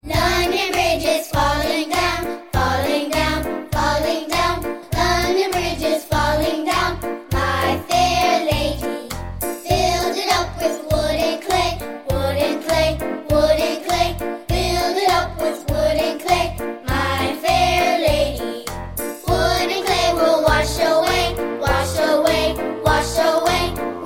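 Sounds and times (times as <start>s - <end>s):
nursery rhyme melody: 0.0s - 24.0s.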